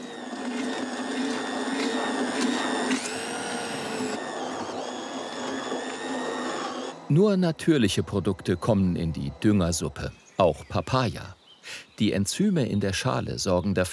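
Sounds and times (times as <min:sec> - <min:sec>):
blender puréeing freshly caught fish for fish-sauce fertilizer: 0:00.0 - 0:09.4
speech: 0:07.1 - 0:13.9.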